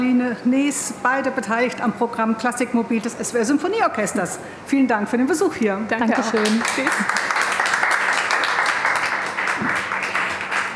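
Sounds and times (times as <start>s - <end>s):
speech: 0.2s - 7.4s
audience applause: 6.3s - 10.7s.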